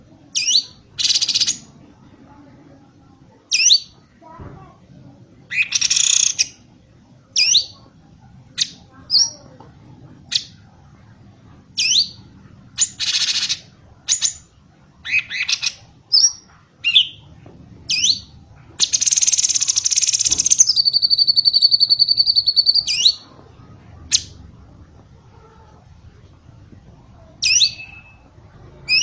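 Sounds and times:
bird song of sharp high chirps, slurred whistles and buzzy rattles: 0.3 - 1.7, 3.5 - 4.0, 5.5 - 6.6, 11.8 - 12.2, 12.8 - 17.3, 17.9 - 23.2, 27.4 - 28.3.

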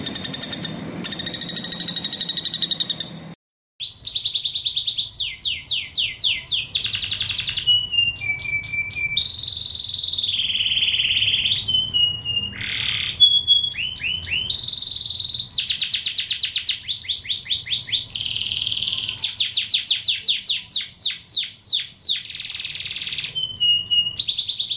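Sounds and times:
bird singing a fast high-pitched chattering song: 0.0 - 24.7.

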